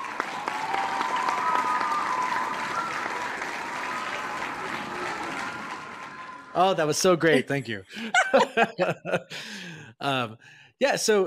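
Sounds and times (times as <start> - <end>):
applause sound effect: 0.0 - 7.4
speech: 6.6 - 11.2
laughter: 7.1 - 9.7.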